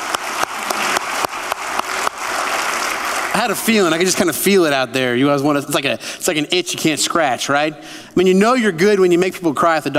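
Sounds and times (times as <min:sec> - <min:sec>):
audience clapping: 0:00.0 - 0:04.6
speech: 0:03.4 - 0:09.9.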